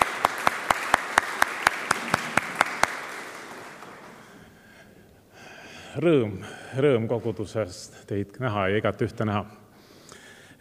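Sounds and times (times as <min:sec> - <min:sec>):
audience applause: 0:00.0 - 0:04.6
speech: 0:06.0 - 0:09.6.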